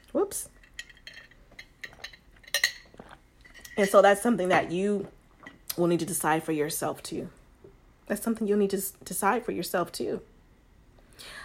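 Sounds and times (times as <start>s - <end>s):
speech: 0.3s - 0.6s, 3.8s - 5.2s, 5.8s - 7.4s, 8.1s - 10.3s
glass of water clinking: 0.6s - 4.0s.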